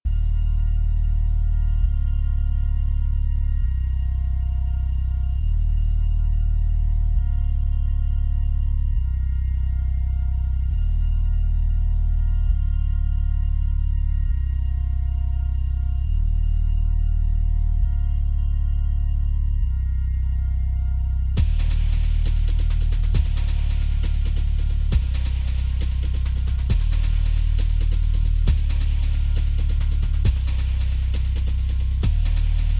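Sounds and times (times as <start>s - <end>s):
drone: 0.1s - 32.7s.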